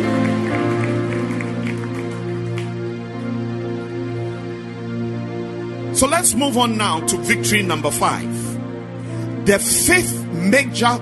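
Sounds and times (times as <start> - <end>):
audience clapping hands: 0.0 - 3.4
droning organ or keyboard chords: 0.0 - 11.0
speech: 6.0 - 8.5, 9.5 - 11.0.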